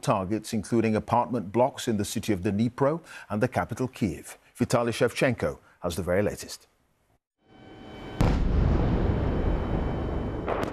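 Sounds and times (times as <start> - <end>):
speech: 0.0 - 6.7
deep rumbling explosion of missile and drone attack: 8.2 - 10.7.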